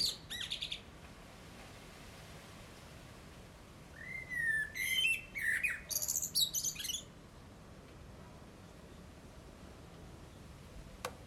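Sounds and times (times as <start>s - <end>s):
Eurasian blackbird whistles and harsh chatter: 0.0s - 0.8s, 4.0s - 7.1s.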